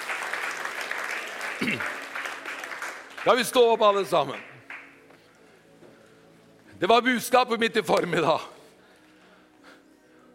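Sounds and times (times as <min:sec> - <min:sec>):
audience applause: 0:00.0 - 0:05.0
speech: 0:01.6 - 0:02.0, 0:03.2 - 0:04.5, 0:06.8 - 0:08.5.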